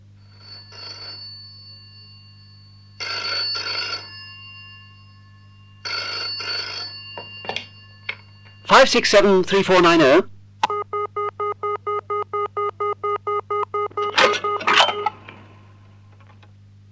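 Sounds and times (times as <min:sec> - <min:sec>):
low steady hum: 0:00.0 - 0:16.9
telephone ringing in the classic double-burst pattern: 0:00.0 - 0:16.9
speech: 0:08.8 - 0:10.3
telephone pickup click: 0:13.5 - 0:16.9.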